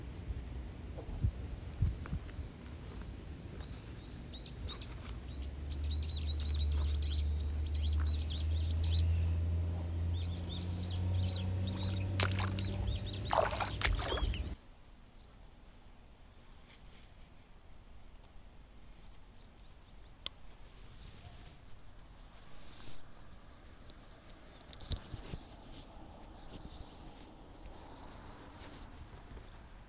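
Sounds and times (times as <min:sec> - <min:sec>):
rustles and snaps of seedlings bundled with straw: 0:00.9 - 0:08.2, 0:11.7 - 0:14.6, 0:22.4 - 0:29.8
birds chirping: 0:01.5 - 0:14.7.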